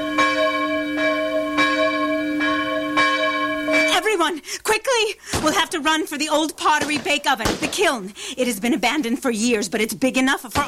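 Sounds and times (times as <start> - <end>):
alarm bell ringing: 0.0 - 4.3
speech: 4.5 - 10.6.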